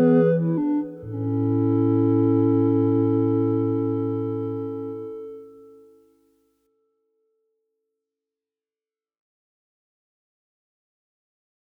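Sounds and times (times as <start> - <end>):
chorale: 0.0 - 6.0.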